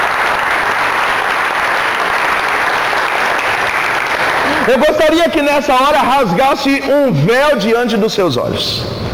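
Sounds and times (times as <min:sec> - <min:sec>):
audience applause: 0:00.0 - 0:05.7
speech: 0:04.7 - 0:09.0.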